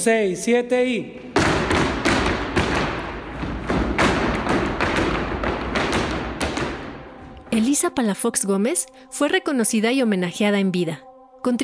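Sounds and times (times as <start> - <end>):
speech: 0.0 - 1.2, 7.6 - 11.6
zapateado dance heel and toe stomps on a wooden floor: 1.3 - 7.6.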